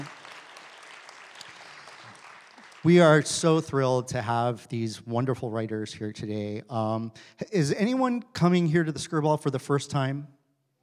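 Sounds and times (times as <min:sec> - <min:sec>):
audience applause: 0:00.0 - 0:03.4
speech: 0:02.8 - 0:10.4.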